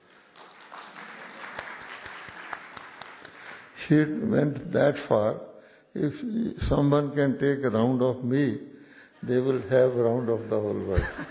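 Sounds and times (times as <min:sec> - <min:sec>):
clapping: 0:00.0 - 0:03.8
speech: 0:03.8 - 0:11.2
laughter: 0:09.2 - 0:11.2.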